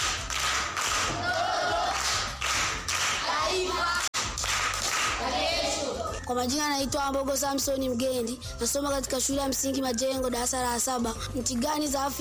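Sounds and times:
audience clapping for a primary school pupil after a quiz question: 0:00.0 - 0:05.8
speech: 0:06.3 - 0:12.2.

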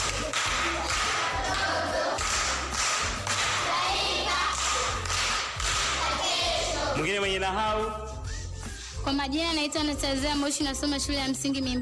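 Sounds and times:
rhythmic applause from a primary school class for a pupil: 0:00.0 - 0:07.0
speech: 0:07.4 - 0:08.1, 0:09.1 - 0:11.8.

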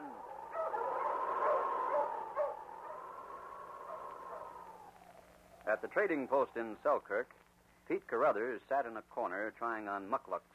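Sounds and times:
dog barking: 0:00.4 - 0:03.0
speech: 0:05.7 - 0:10.5.

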